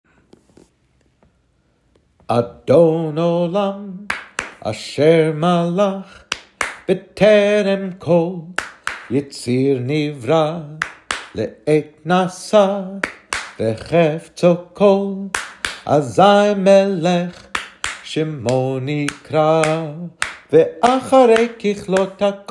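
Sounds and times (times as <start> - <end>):
Jewish hymn: 2.3 - 22.4
clapping: 4.1 - 4.6, 6.3 - 6.9, 8.6 - 9.1, 10.8 - 11.4, 13.0 - 13.6, 15.4 - 15.9, 17.5 - 20.5.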